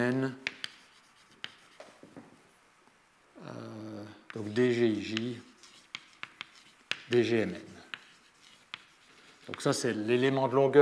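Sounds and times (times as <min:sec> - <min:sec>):
speech: 0:00.0 - 0:00.5, 0:04.4 - 0:05.5, 0:07.1 - 0:07.7, 0:09.5 - 0:10.8
writing a mathematical factor on a board: 0:00.0 - 0:02.3, 0:04.3 - 0:09.8.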